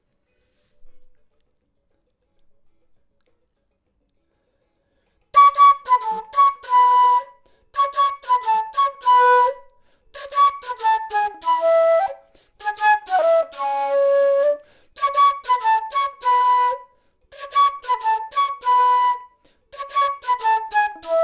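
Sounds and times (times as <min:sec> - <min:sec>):
flute: 0:05.4 - 0:21.2.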